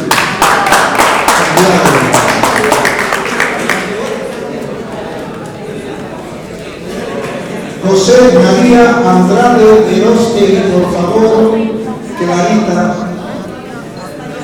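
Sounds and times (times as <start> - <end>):
audience clapping: 0.0 - 5.5
crowd chatter: 0.0 - 14.4
speech: 1.6 - 2.0, 8.0 - 13.0.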